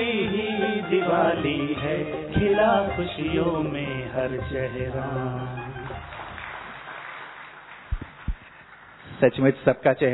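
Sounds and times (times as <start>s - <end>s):
speech: 1.0s - 5.6s, 9.2s - 10.1s
audience applause: 5.9s - 9.1s.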